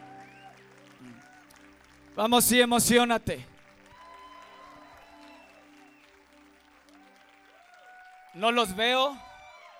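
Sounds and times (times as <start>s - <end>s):
audience applause: 0.0s - 9.7s
speech: 2.2s - 3.5s, 8.4s - 9.2s.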